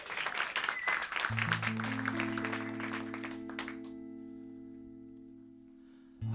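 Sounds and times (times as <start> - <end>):
audience applause welcoming a band at a radio live session: 0.0 - 3.9
speech: 1.3 - 2.2
band music: 1.5 - 4.4.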